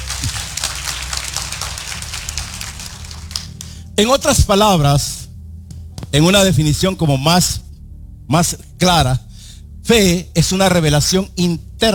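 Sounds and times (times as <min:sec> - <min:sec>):
audience applause: 0:00.0 - 0:03.7
speech: 0:04.0 - 0:05.2, 0:06.1 - 0:07.6, 0:08.3 - 0:11.9.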